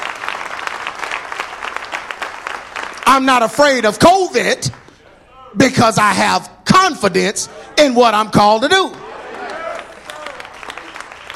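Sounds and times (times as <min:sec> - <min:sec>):
audience hand claps: 0:00.0 - 0:03.5, 0:09.4 - 0:11.3
speech: 0:03.1 - 0:04.8, 0:05.5 - 0:09.0.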